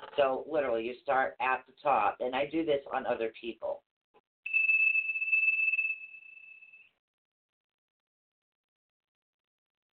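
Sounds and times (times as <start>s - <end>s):
speech: 0.2s - 3.9s
glass tincture bottle tapped ringing: 4.5s - 6.9s.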